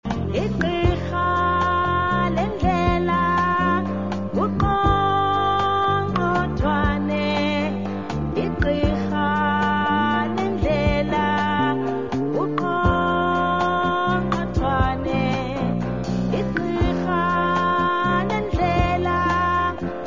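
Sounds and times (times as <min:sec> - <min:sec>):
song with clicking: 0:00.1 - 0:20.0.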